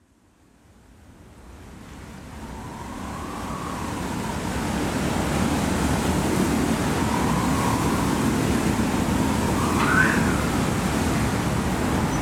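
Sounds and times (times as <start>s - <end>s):
wind rustling: 2.0s - 12.2s.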